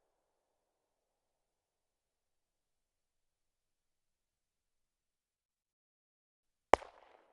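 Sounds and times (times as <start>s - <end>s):
Glock 17 pistol firing off axis: 6.7s - 7.2s.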